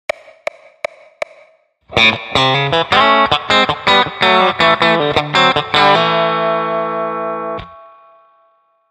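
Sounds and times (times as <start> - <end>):
chicken picking guitar: 1.9 - 8.1.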